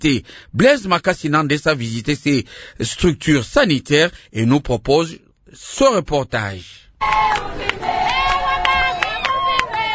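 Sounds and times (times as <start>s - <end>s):
speech: 0.0s - 8.0s
women from camp Elia and the village of Ongwa singing to welcome a delegation: 7.0s - 9.9s.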